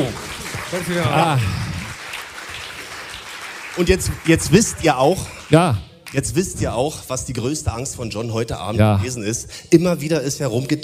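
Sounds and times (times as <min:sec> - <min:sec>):
audience applause: 0:00.0 - 0:05.6
speech: 0:00.1 - 0:01.6, 0:03.8 - 0:10.8.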